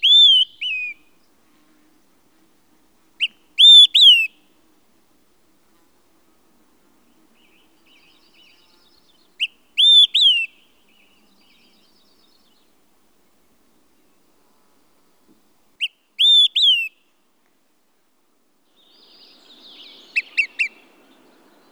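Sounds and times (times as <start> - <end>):
Olive-sided Flycatcher calling: 0.0 - 1.2, 3.2 - 4.4, 7.2 - 12.6, 15.8 - 16.9, 18.7 - 21.7.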